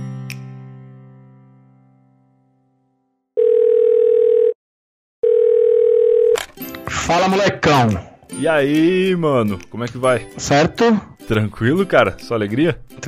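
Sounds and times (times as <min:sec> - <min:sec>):
phone call ringing tone: 0:03.4 - 0:04.6, 0:05.2 - 0:06.4
speech: 0:07.1 - 0:13.0.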